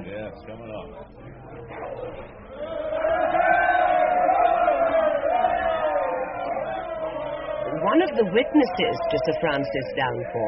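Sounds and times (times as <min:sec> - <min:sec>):
speech: 0:00.1 - 0:02.7, 0:07.9 - 0:10.4
crowd going wild: 0:01.9 - 0:10.4.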